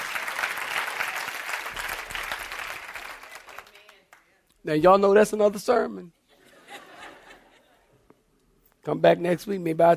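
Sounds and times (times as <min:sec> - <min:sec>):
audience clapping hands: 0:00.0 - 0:04.4
speech: 0:04.6 - 0:06.2, 0:08.8 - 0:09.9
laughter: 0:06.4 - 0:07.9.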